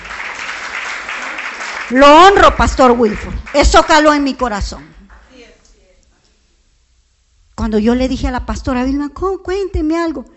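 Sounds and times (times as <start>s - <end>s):
audience applauding: 0.0s - 4.9s
speech: 1.9s - 5.0s, 7.6s - 10.3s.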